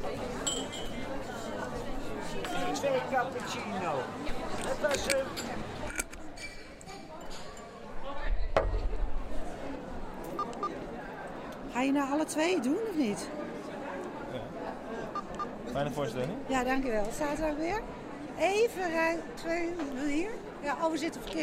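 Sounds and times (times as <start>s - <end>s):
overlapping chatter in a theatre foyer: 0.0s - 21.4s
glasses clinking: 0.4s - 1.0s
speech: 2.8s - 5.7s, 11.8s - 13.4s, 15.8s - 21.4s.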